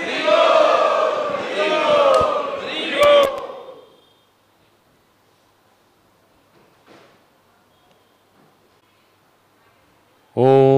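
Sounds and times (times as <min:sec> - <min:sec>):
crowd chanting in unison as a traditional welcome at Sri Radha Gopinath Temple: 0:00.0 - 0:04.0.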